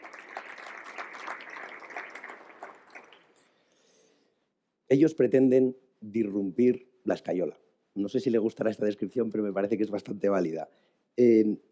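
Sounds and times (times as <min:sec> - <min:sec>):
audience applause: 0:00.0 - 0:03.4
speech: 0:04.9 - 0:11.7.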